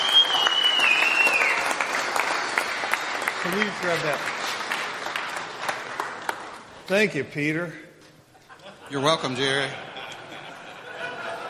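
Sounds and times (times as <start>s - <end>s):
audience applause welcoming a speaker: 0.0s - 6.8s
speech: 3.5s - 4.4s, 6.9s - 7.8s, 8.9s - 9.9s
laughter: 8.3s - 11.4s.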